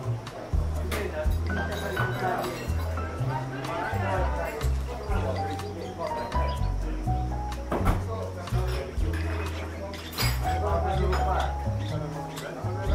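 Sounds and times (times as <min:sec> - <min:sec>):
background music with deep stepping bass line: 0:00.0 - 0:12.9
murmur of talking voices in a coffee shop: 0:00.0 - 0:12.9
clinks and clatters: 0:00.9 - 0:03.1, 0:08.6 - 0:12.7.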